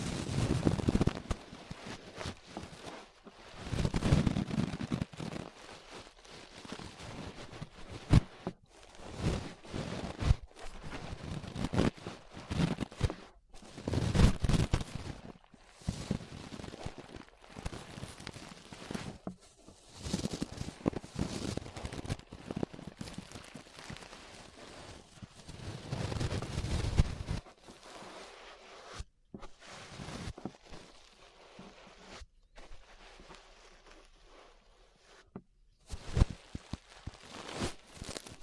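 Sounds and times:
ear brushing: 0:00.0 - 0:38.4.

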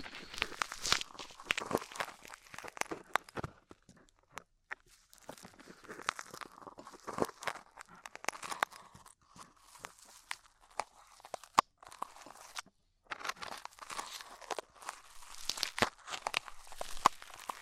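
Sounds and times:
crackling clicks and scratches from rhinestone and clay removal: 0:00.0 - 0:17.6.

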